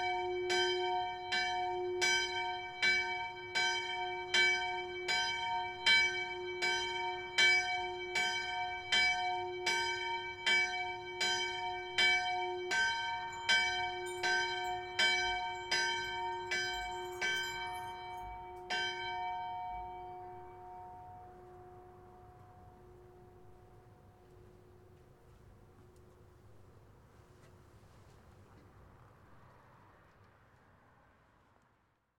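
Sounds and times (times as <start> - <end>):
church bell tuned to F sharp ringing: 0.0 - 24.4.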